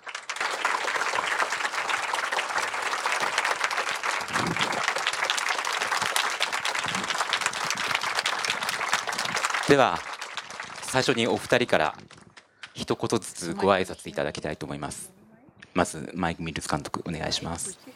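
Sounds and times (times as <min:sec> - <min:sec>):
audience applause welcoming guests: 0:00.0 - 0:12.5
speech: 0:09.7 - 0:10.1, 0:10.9 - 0:12.0, 0:12.8 - 0:15.1, 0:15.8 - 0:17.9.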